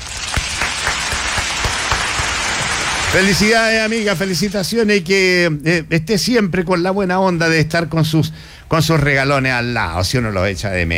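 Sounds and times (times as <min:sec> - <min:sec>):
applause: 0:00.0 - 0:03.6
speech: 0:03.1 - 0:10.9.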